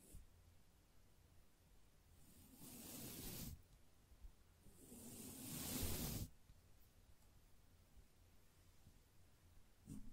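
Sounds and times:
gentle brushing strokes: 2.2 - 3.8, 4.7 - 7.3.

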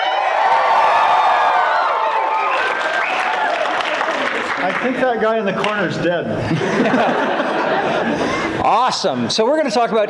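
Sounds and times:
live studio audience screaming and cheering: 0.0 - 5.0
laughter: 3.5 - 5.2, 6.3 - 8.9
speech: 4.8 - 10.0.

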